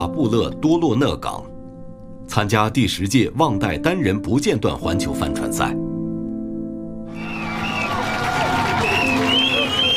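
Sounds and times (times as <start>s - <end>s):
speech: 0.2s - 1.5s, 2.3s - 5.8s
harbour crowd cheering and chattering: 7.1s - 9.9s
high whistles: 7.1s - 9.9s
scattered clapping: 7.3s - 9.9s.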